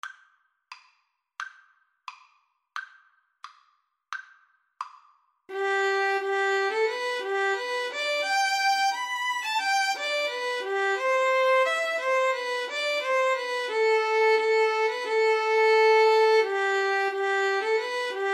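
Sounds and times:
violin and cello duet: 5.5s - 18.3s.

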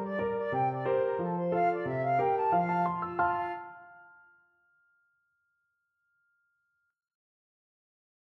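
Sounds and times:
flute playing a hornpipe: 0.1s - 3.8s.

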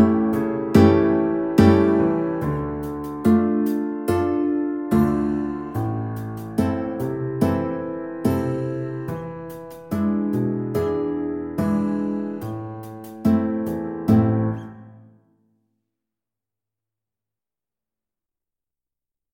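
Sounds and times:
recorder karaoke: 0.0s - 14.8s.

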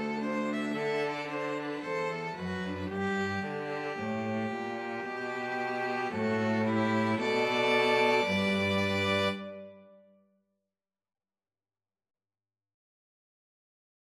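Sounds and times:
cello: 0.0s - 10.0s
two violins: 0.0s - 10.0s.

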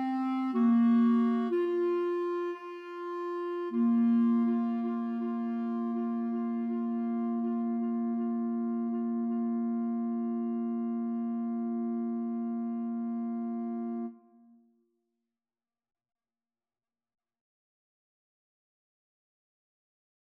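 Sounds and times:
clarinet trio playing a pavane: 0.0s - 14.2s.

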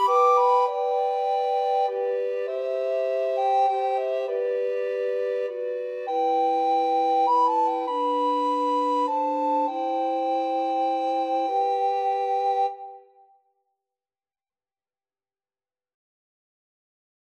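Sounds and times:
recorder trio playing a hymn: 0.0s - 13.0s.

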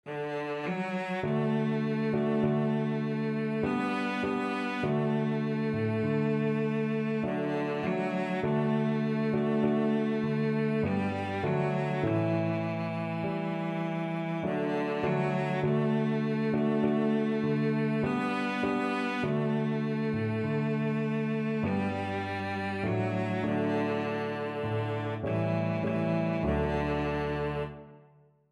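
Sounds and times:
cello: 0.0s - 28.1s.

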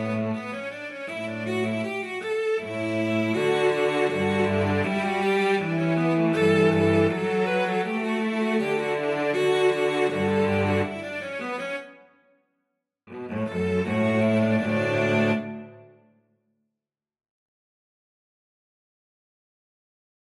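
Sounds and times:
solo cello gavotte: 0.0s - 11.9s, 13.1s - 16.0s.

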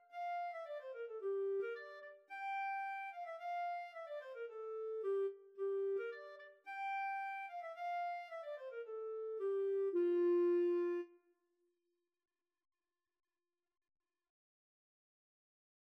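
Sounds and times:
clarinet duet: 0.0s - 11.2s.

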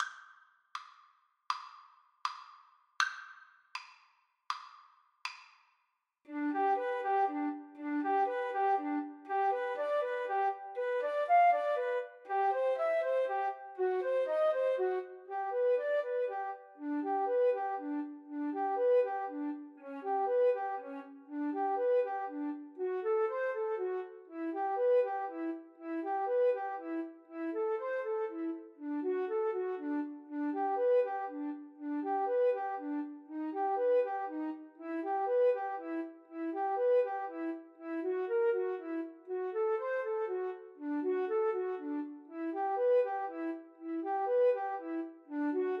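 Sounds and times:
flute duet: 6.3s - 45.7s.

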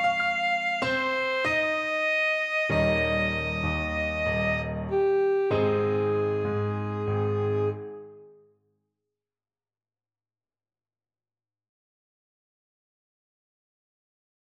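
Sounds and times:
alto saxophone: 0.0s - 8.3s.

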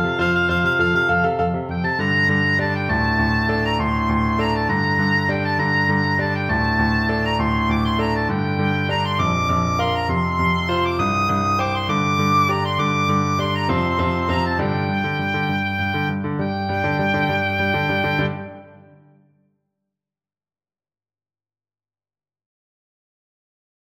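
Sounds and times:
oboe playing pirate music: 0.0s - 19.1s.

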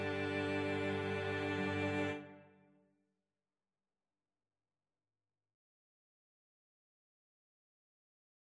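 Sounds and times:
cello trio playing a pavane: 0.0s - 2.5s.

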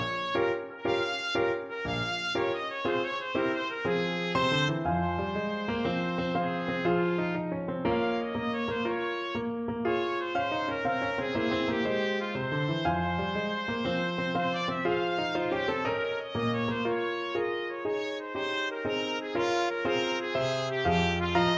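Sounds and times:
trumpet playing a tarantella: 0.0s - 21.5s.

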